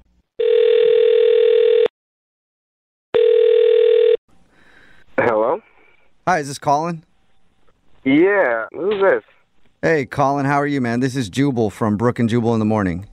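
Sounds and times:
telephone dial tone: 0.4s - 1.9s, 3.1s - 4.2s
speech: 6.3s - 7.1s, 8.1s - 13.1s.

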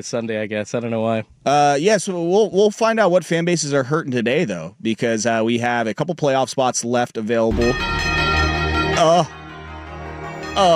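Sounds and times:
speech: 0.0s - 8.1s, 9.0s - 9.4s, 10.6s - 10.7s
brassy horn blast: 7.5s - 10.7s.

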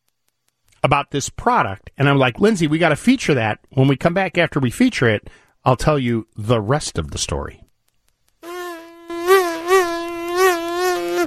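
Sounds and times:
speech: 0.8s - 7.6s
flying bug buzzing: 8.3s - 11.2s.

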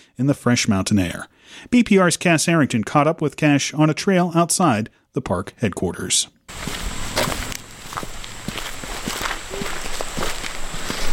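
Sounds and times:
speech: 0.2s - 7.4s
footsteps on a mountain trail to Cataract Falls: 6.5s - 11.1s.

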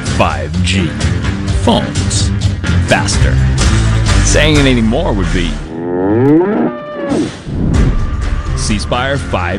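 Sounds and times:
speech: 0.2s - 7.4s, 8.6s - 9.5s
bull mooing: 5.6s - 7.5s.

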